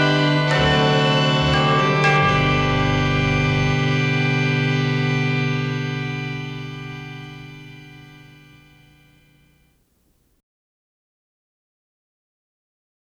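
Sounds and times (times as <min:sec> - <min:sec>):
Christmas organ: 0:00.0 - 0:10.0.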